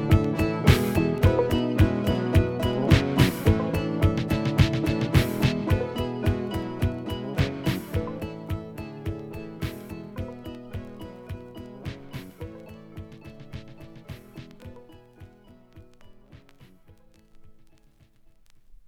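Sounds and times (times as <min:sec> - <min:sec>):
person singing: 0:00.0 - 0:14.3
clock ticking: 0:00.0 - 0:18.8.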